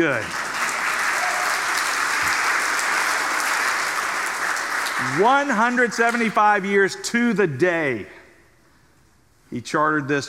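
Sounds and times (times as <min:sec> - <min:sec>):
speech: 0:00.0 - 0:00.4, 0:05.0 - 0:08.2, 0:09.5 - 0:10.2
audience applause: 0:00.0 - 0:06.2.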